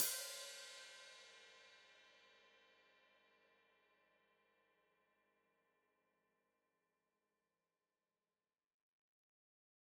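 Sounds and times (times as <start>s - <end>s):
open hi-hat played with foot: 0.0s - 1.4s.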